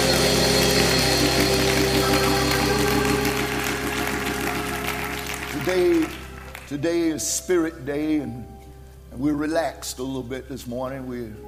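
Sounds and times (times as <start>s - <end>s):
audience applause: 0.0s - 6.8s
speech: 6.8s - 8.6s, 9.2s - 11.4s.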